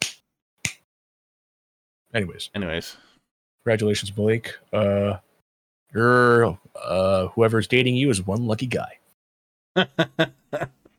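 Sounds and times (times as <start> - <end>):
hand claps: 0.0 - 0.8
speech: 2.1 - 5.3, 5.9 - 9.0, 9.8 - 10.8.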